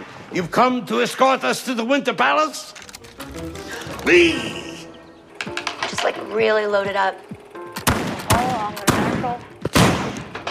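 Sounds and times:
speech: 0.4s - 2.8s, 3.4s - 4.6s, 6.0s - 7.3s
gunshots outside: 7.8s - 10.4s.

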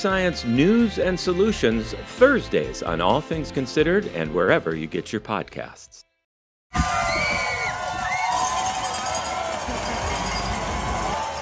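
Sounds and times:
speech: 0.0s - 6.0s
spectators cheering along a ski race course: 6.7s - 11.3s
bells clanking: 8.3s - 11.3s.

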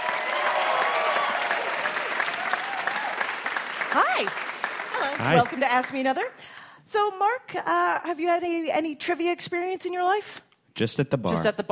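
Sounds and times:
audience applause for contestants on a trivia game show: 0.0s - 6.1s
speech: 3.9s - 11.6s.

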